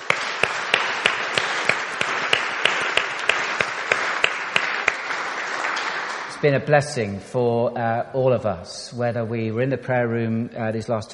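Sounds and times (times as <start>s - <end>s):
audience applause: 0.0s - 6.4s
speech: 6.4s - 11.1s.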